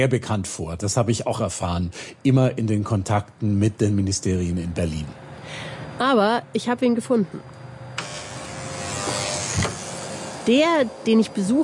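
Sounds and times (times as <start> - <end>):
speech: 0.0 - 7.6, 10.4 - 11.6
vacuum cleaner cleaning the hallway of a rented apartment building: 8.0 - 11.6.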